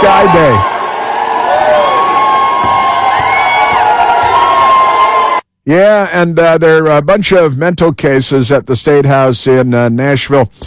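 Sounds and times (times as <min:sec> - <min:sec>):
speech: 0:00.0 - 0:00.8, 0:05.6 - 0:10.6
protest crowd jeering and shouting: 0:00.0 - 0:05.4.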